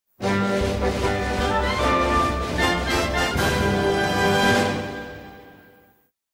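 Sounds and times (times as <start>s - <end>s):
victory theme music: 0.2s - 5.9s.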